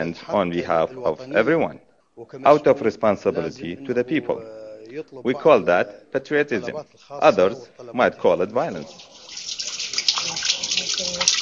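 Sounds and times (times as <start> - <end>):
speech: 0.0 - 9.6
water running as pilgrims collect holy water at a mosque: 8.4 - 11.3.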